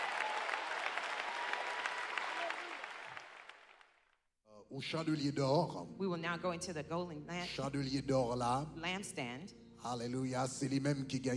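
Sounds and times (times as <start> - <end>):
audience applauding: 0.0 - 4.0
speech: 4.7 - 11.3.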